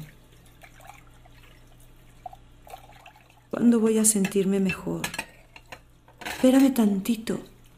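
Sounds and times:
water splashes: 0.0 - 3.6
running water rinsing dishes: 0.0 - 7.7
speech: 3.5 - 5.2, 6.4 - 7.5.

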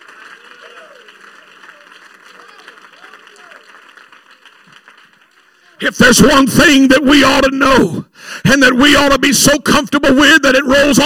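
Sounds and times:
audience applause: 0.0 - 6.0
speech: 5.8 - 11.0.

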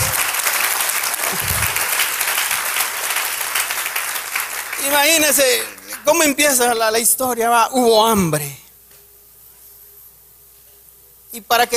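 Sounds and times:
audience applauding loudly: 0.0 - 6.5
speech: 5.0 - 8.6, 11.4 - 11.7.

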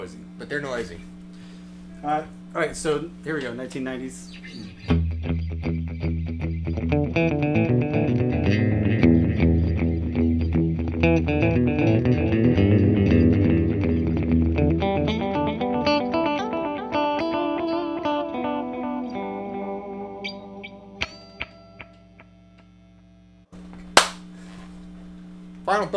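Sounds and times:
speech: 0.0 - 1.2, 2.0 - 5.0
electric guitar played through an analog delay: 4.8 - 22.4.

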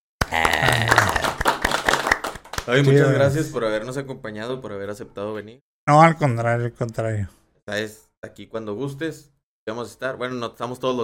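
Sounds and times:
applause: 0.2 - 3.4
speech: 0.3 - 0.5, 2.7 - 11.0
laughter: 0.3 - 1.4.

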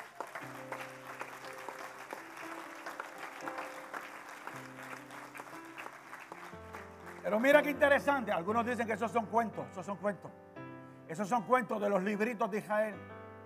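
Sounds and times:
brief hesitant applause: 0.0 - 7.8
speech: 7.3 - 10.5, 11.1 - 13.1.

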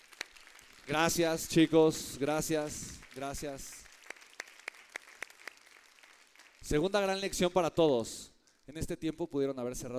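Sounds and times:
audience applause: 0.0 - 6.7
speech: 0.9 - 3.8, 6.7 - 9.9.

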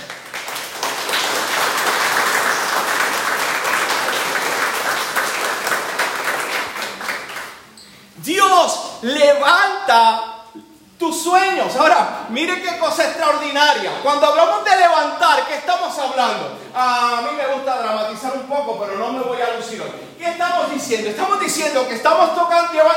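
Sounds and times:
audience applause: 0.0 - 7.6
speech: 8.7 - 10.3, 11.0 - 22.9.

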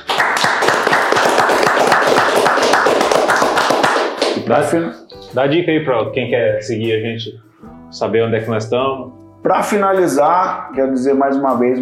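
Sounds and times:
round of applause: 0.0 - 4.5
speech: 4.5 - 11.7.

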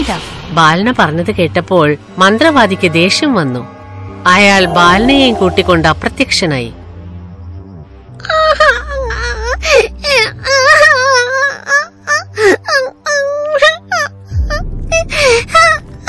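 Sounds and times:
speech: 0.0 - 6.8
young princess crying in an animated fairy-tale story: 8.2 - 16.0.

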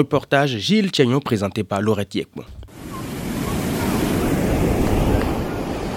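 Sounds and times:
speech: 0.0 - 2.6
beach wind: 0.0 - 5.9
beach surf: 2.7 - 5.9.

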